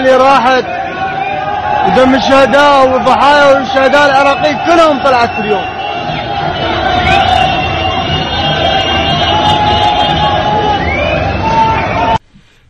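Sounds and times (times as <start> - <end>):
speech: 0.0 - 0.9, 1.8 - 5.8
street crowd celebrating and cheering: 0.0 - 12.2
droning horn-like tones: 5.6 - 12.2.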